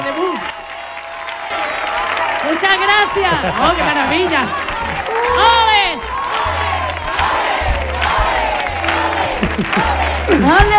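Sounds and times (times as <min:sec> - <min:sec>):
thunderous applause: 0:00.0 - 0:10.7
speech: 0:02.5 - 0:04.6
laughter: 0:02.8 - 0:05.8, 0:07.8 - 0:10.7.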